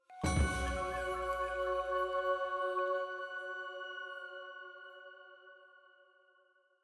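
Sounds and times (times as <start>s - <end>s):
full choir item jingle: 0.0s - 5.3s
flute in F sharp: 0.0s - 5.9s.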